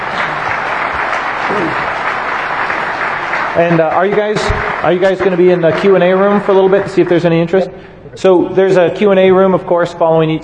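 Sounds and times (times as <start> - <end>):
audience applause: 0.0 - 7.2
speech: 1.6 - 1.8, 3.6 - 10.4.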